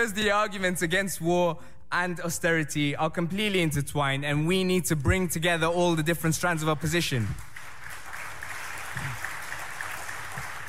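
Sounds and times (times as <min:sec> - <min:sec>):
speech: 0:00.0 - 0:07.5
audience applause: 0:07.4 - 0:10.6.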